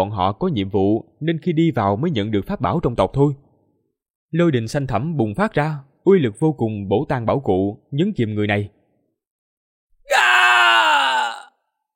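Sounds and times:
speech: 0.0 - 3.4, 4.3 - 8.8
man screaming: 10.0 - 11.6.

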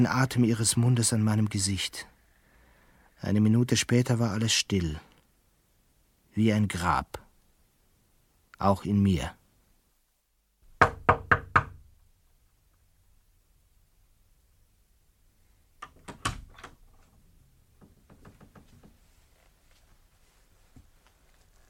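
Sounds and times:
speech: 0.0 - 2.1, 3.2 - 5.1, 6.4 - 7.2, 8.6 - 9.4
knocking on a door: 10.8 - 11.9.

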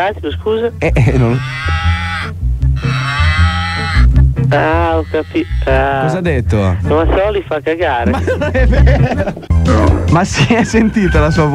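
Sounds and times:
speech: 0.0 - 1.9, 4.5 - 11.5
person imitating a cow's moo: 1.1 - 6.1
laughter: 8.0 - 9.5.

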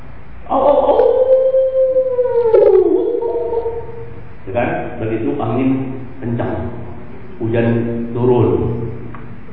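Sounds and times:
wolf howling: 0.5 - 4.3
speech: 5.1 - 5.8, 7.5 - 8.7.

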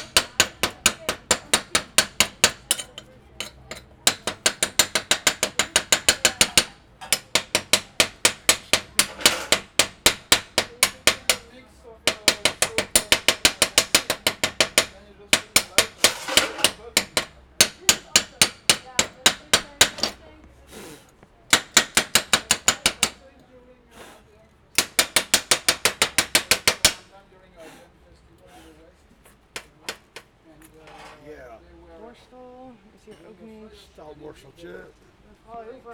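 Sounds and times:
hammering on scrap metal: 0.0 - 20.5, 21.5 - 23.3, 24.7 - 27.2, 29.5 - 30.3.

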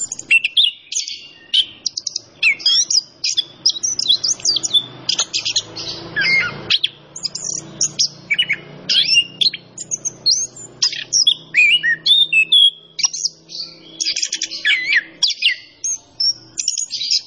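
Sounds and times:
orange-headed thrush singing energetically: 0.0 - 17.2.

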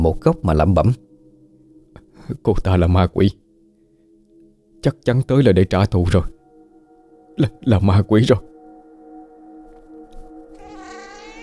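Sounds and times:
speech: 0.0 - 1.0, 2.3 - 3.4, 4.8 - 6.4, 7.4 - 8.5
mournful cat meowing: 10.6 - 11.4.

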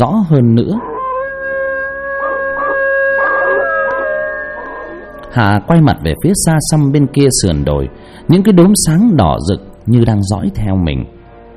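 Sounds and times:
speech: 0.0 - 1.0, 5.3 - 11.2
humming tonal drone: 0.0 - 6.4
dog howling: 0.7 - 5.7.

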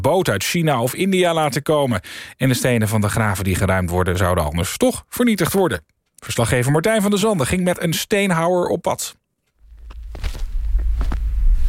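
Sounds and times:
speech: 0.0 - 9.2
footsteps of people walking to a grave at Jonkerbos cemetery in Nijmegen: 9.4 - 11.6
low rumble: 9.7 - 11.6.

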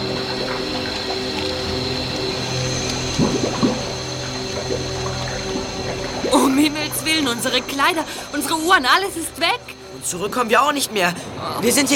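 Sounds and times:
boat sinking into water: 0.0 - 8.8
speech: 6.6 - 11.9.

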